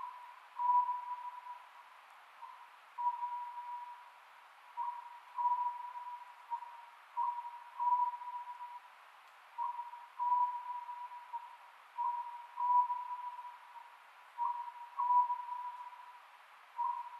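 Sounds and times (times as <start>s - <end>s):
Oriental scops owl hooting: 0.0s - 1.7s, 2.4s - 4.1s, 4.8s - 8.8s, 9.6s - 16.2s, 16.8s - 17.1s
background hiss: 0.0s - 17.1s.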